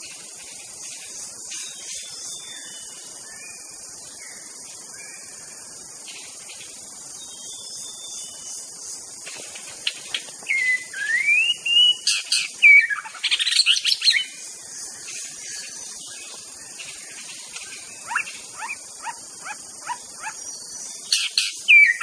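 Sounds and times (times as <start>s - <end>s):
wild white-rumped shama singing in forest: 10.5s - 14.3s, 18.0s - 22.0s.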